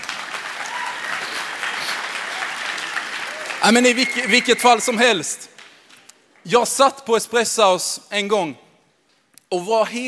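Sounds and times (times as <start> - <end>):
audience applause: 0.0 - 5.3
speech: 3.6 - 5.6, 6.4 - 8.6, 9.5 - 10.0.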